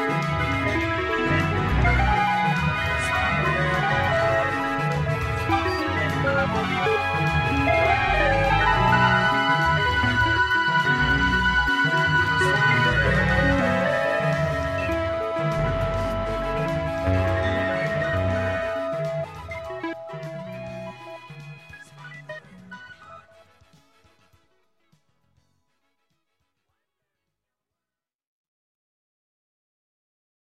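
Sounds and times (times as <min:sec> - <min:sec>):
midi mix: 0:00.0 - 0:24.3.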